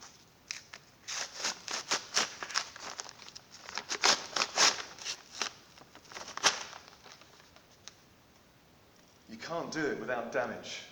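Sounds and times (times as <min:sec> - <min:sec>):
two stuck pieces of paper being pulled apart: 0:00.5 - 0:07.1
speech: 0:09.7 - 0:10.9.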